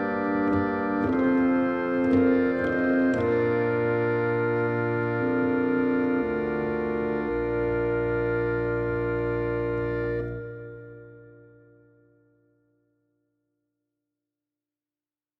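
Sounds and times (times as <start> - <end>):
Russian organ music: 0.0 - 12.0.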